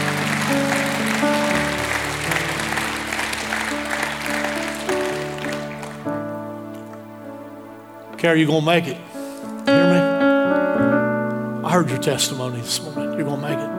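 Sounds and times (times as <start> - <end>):
audience clapping: 0.0 - 7.1
sustained organ chords: 0.0 - 13.7
speech: 8.2 - 9.1, 11.8 - 13.7.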